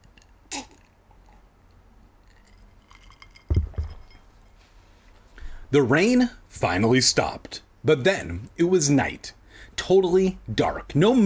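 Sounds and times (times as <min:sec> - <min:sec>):
person gulping a drink: 0:00.5 - 0:01.5
glass clinking: 0:02.3 - 0:04.4
speech: 0:05.7 - 0:11.2.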